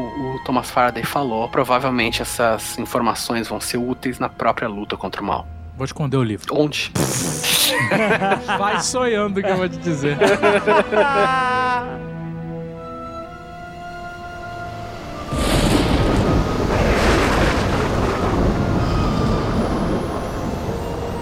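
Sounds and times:
speech: 0.4 - 11.6
laughter: 7.3 - 12.2
stormy sea waves on rocky beach: 14.8 - 21.2.

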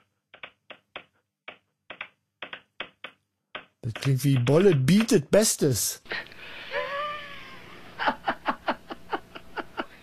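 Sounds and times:
pen clicking rhythmically: 0.0 - 5.5
speech: 3.9 - 6.3
laughter: 6.6 - 10.0.

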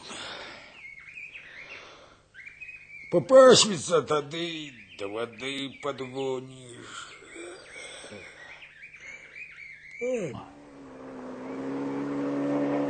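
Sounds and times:
speech: 3.1 - 7.1, 10.0 - 10.6
motorboat engine hum: 10.4 - 12.8.

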